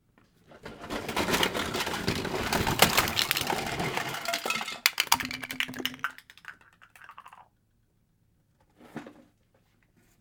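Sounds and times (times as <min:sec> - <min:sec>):
toys crashing: 0:01.0 - 0:07.4.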